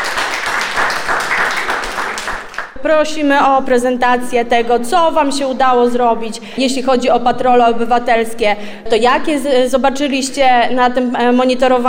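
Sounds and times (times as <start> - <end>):
applause from participants and volunteers of a seniors' safety project: 0.0 - 2.8
speech: 2.8 - 11.8.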